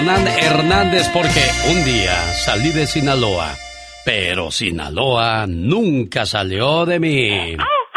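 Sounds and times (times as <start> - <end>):
Mexican grito shout: 0.0 - 1.6
speech: 0.1 - 7.8.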